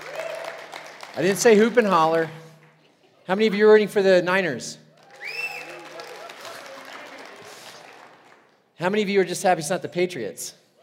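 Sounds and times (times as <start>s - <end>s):
audience clapping: 0.0s - 3.0s, 4.9s - 8.7s
speech: 1.2s - 2.4s, 3.3s - 4.8s, 8.8s - 10.6s.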